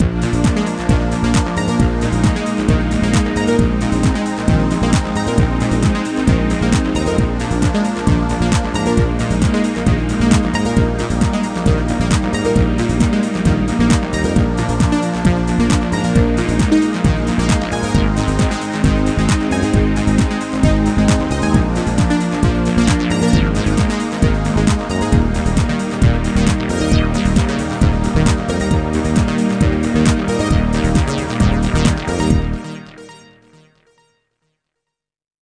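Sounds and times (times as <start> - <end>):
synth music: 0.0 - 33.8.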